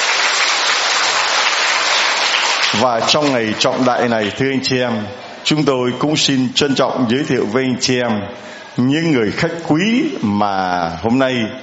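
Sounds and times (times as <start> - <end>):
church congregation applauding during Mass to celebrate Pentecost: 0.0 - 4.4
speech: 2.8 - 11.6.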